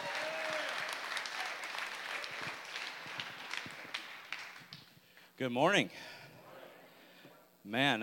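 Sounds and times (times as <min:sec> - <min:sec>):
Lake Church congregation applauding a guest pastor: 0:00.0 - 0:05.3
speech: 0:05.4 - 0:06.2, 0:07.6 - 0:08.0.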